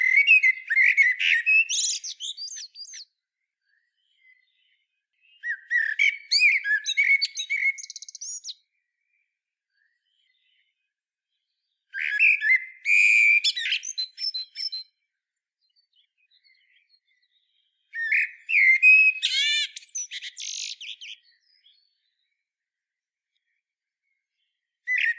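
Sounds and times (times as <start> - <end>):
common blackbird singing: 0.0 - 8.8, 11.6 - 15.0, 15.7 - 22.3, 24.9 - 25.1.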